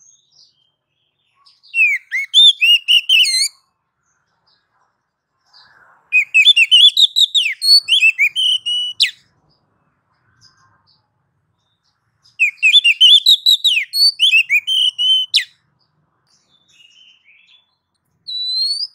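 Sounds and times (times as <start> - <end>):
Oriental magpie-robin whistling: 1.6 - 3.6, 6.1 - 9.2, 12.3 - 15.6, 16.5 - 18.9.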